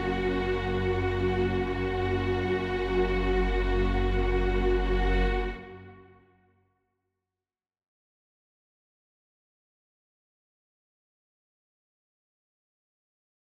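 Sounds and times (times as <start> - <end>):
string orchestra playing an intermezzo: 0.0 - 6.0.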